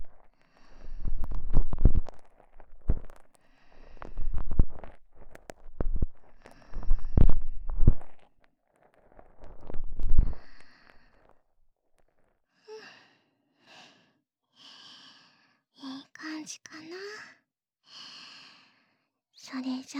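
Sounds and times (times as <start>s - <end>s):
ear cleaning with cotton swab and fingers: 0.0s - 11.3s.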